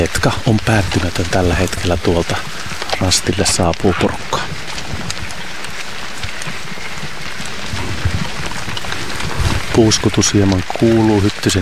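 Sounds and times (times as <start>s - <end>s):
speech: 0.0s - 4.6s, 9.8s - 11.5s
low rumbling: 0.0s - 11.5s
rain falling: 0.0s - 11.5s.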